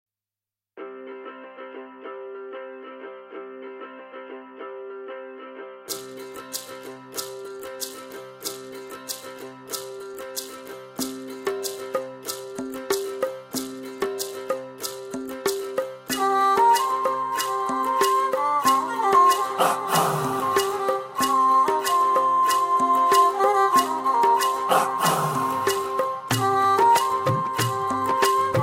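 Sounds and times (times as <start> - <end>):
Kannada ringtone: 5.9 - 28.6.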